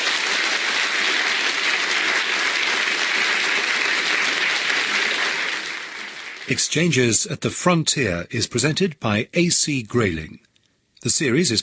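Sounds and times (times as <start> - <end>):
audience applause: 0.0 - 7.1
speech: 6.5 - 11.6.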